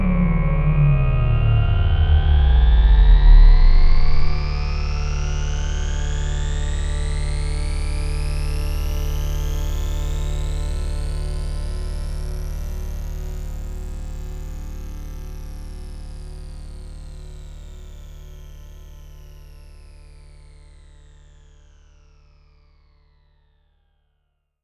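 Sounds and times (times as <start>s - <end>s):
synthesizer filter sweeps: 0.0s - 11.1s.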